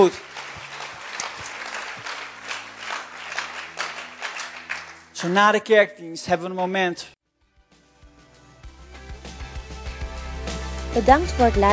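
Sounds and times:
speech: 0.0s - 0.3s, 5.2s - 7.2s, 10.9s - 11.7s
audience applause: 0.0s - 5.5s.

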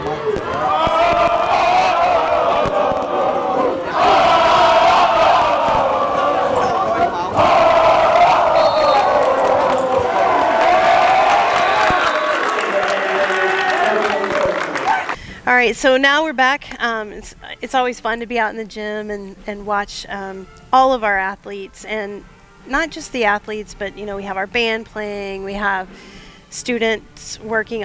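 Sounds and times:
busy roar of crowd noise: 0.0s - 15.2s
student section chanting a cheer: 0.0s - 15.2s
speech: 15.6s - 27.8s.

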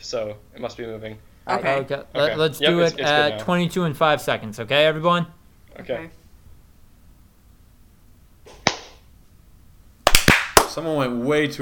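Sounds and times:
speech: 0.0s - 6.2s, 10.8s - 11.6s
hand clap: 8.6s - 9.0s, 10.0s - 10.8s.

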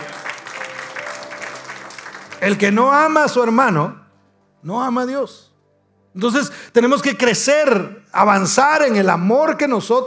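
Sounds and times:
audience applause: 0.0s - 3.0s
speech: 2.4s - 4.0s, 4.6s - 5.5s, 6.1s - 10.0s.

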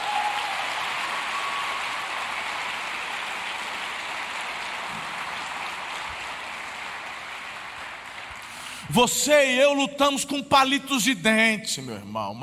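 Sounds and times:
audience applauding: 0.0s - 8.9s
speech: 8.9s - 12.4s.

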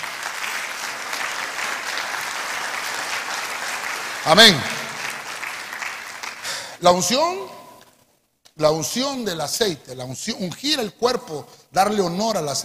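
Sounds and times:
audience clapping loudly: 0.0s - 6.8s
speech: 4.2s - 4.7s, 6.8s - 7.6s, 8.6s - 12.6s.

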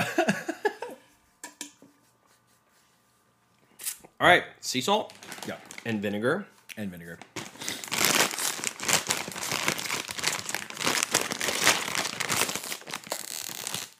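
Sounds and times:
speech: 4.2s - 7.4s
opening a crinkly bag of chips: 5.1s - 6.0s, 7.2s - 13.9s.

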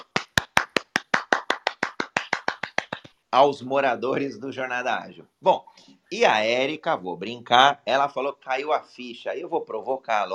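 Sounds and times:
audience clapping hands in a brisk steady rhythm: 0.0s - 3.2s
speech: 3.3s - 10.3s.

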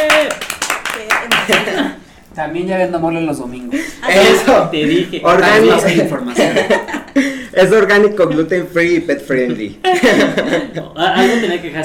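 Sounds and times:
applause: 0.0s - 1.8s
laughter: 1.4s - 2.0s, 3.8s - 8.6s, 9.3s - 11.8s
speech: 2.4s - 11.8s.

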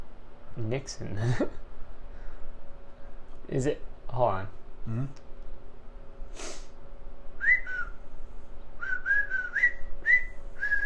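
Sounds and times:
speech: 0.6s - 1.7s, 3.5s - 5.2s
short burst of breath: 6.3s - 6.8s
person whistling a film theme tune: 7.4s - 8.0s, 8.8s - 10.8s.

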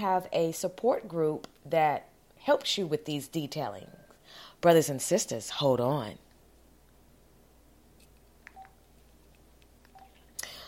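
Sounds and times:
speech: 0.0s - 6.2s
telephone dialing beeps: 8.5s - 8.8s, 9.9s - 10.2s.

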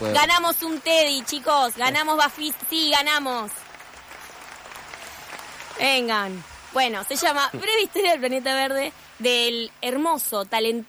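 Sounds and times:
speech: 0.0s - 3.6s, 5.8s - 10.8s
applause: 0.0s - 6.1s.

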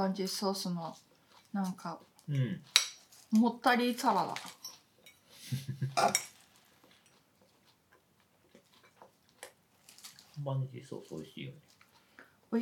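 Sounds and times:
speech: 0.0s - 4.6s, 5.5s - 6.3s, 10.4s - 11.7s
cutlery and dishes clinking as food is served: 2.6s - 3.3s, 4.2s - 5.3s, 6.0s - 7.2s.

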